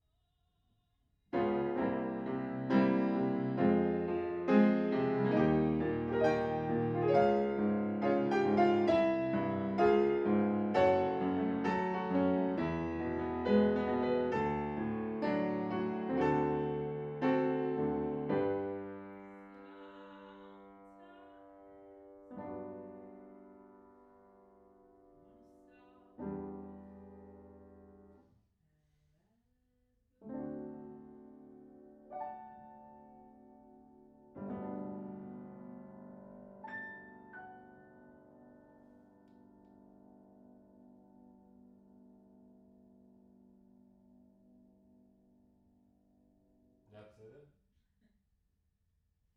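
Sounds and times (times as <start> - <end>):
piano in a room: 1.3 - 28.3, 30.2 - 47.1.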